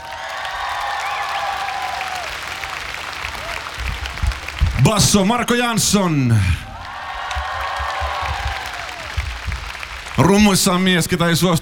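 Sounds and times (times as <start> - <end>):
whistles and cheers: 0.0 - 4.4, 6.8 - 9.8
crowd applauding for band introduction: 0.0 - 5.4, 6.6 - 11.0
speech: 4.8 - 6.6, 10.2 - 11.6.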